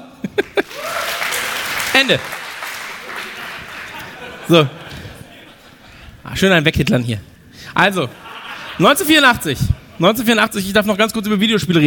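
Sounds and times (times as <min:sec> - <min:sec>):
laughter: 0:00.0 - 0:01.1, 0:02.9 - 0:06.1, 0:08.0 - 0:10.1
audience applause: 0:00.4 - 0:04.3
speech: 0:02.0 - 0:02.4, 0:04.5 - 0:04.8, 0:06.3 - 0:08.2, 0:08.8 - 0:11.8.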